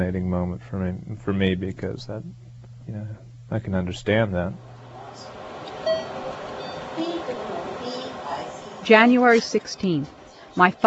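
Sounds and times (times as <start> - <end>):
speech: 0.0 - 5.3, 8.8 - 10.8
beep during chemotherapy: 5.8 - 6.9.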